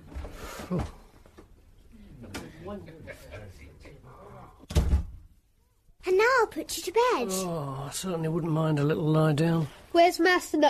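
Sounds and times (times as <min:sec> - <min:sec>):
speech: 0:00.7 - 0:01.0, 0:02.7 - 0:04.3, 0:06.5 - 0:10.6
door closing with a thud: 0:04.6 - 0:05.3.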